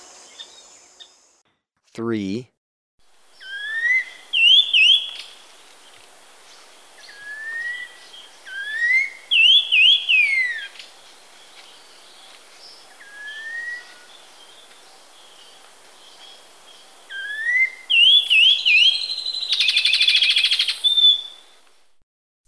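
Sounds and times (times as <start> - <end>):
speech: 2.0 - 2.5
Black-winged Saltator whistling song: 3.4 - 5.2, 7.2 - 10.7, 17.1 - 21.4.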